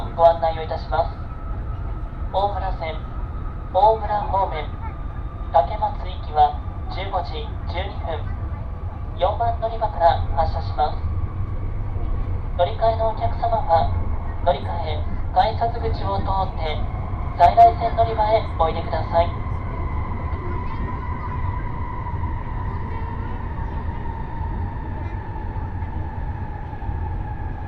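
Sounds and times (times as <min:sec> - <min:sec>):
Nishi-Kyushu Shinkansen low rumble on ride from Nagasaki to Saga: 0:00.0 - 0:27.6.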